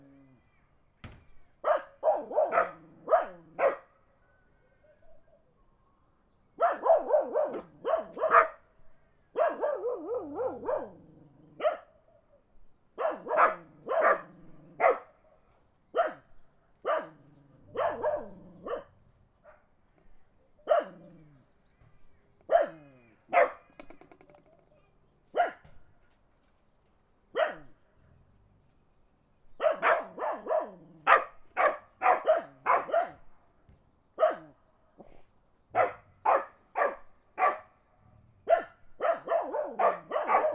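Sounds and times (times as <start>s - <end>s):
dogs barking in the country: 1.6s - 4.0s, 6.6s - 8.6s, 9.3s - 11.9s, 13.0s - 15.2s, 15.9s - 19.7s, 20.6s - 21.3s, 22.4s - 24.0s, 25.3s - 25.7s, 27.3s - 27.8s, 29.6s - 33.3s, 34.2s - 35.1s, 35.7s - 37.8s, 38.4s - 40.5s.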